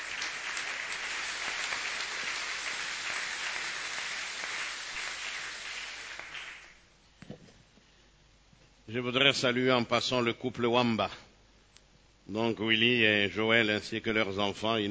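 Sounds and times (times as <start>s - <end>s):
church congregation applauding: 0.0s - 6.9s
speech: 8.9s - 11.2s, 12.3s - 14.8s.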